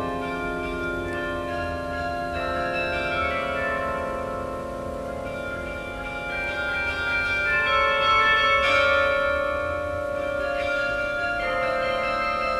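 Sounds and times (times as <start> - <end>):
carillon concert: 0.0 - 12.5.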